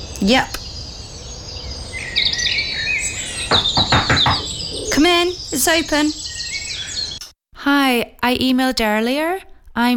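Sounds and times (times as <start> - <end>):
dawn chorus of birdsong: 0.0 - 7.3
speech: 0.2 - 0.6, 3.5 - 4.2, 5.0 - 6.2, 7.6 - 9.9.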